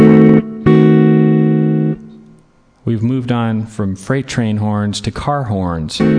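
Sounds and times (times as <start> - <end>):
guitar playing D-sharp diminished 7 chord: 0.0 - 2.5, 6.0 - 6.1
speech: 2.9 - 6.1.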